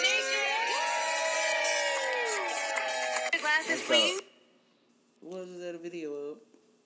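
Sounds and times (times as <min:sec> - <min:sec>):
people at Roc Nation cheering and whooping in celebration: 0:00.0 - 0:04.2
speech: 0:03.4 - 0:04.3, 0:05.2 - 0:06.5.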